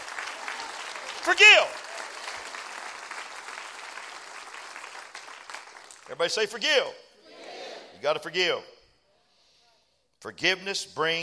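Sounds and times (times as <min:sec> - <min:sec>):
audience clapping: 0:00.0 - 0:06.6
speech: 0:01.2 - 0:01.8, 0:06.1 - 0:07.0, 0:08.0 - 0:08.7, 0:10.2 - 0:11.2.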